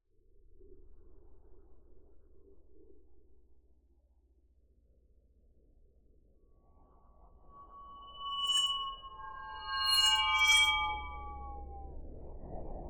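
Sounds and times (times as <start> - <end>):
long swirling sound effect: 7.4 - 11.8.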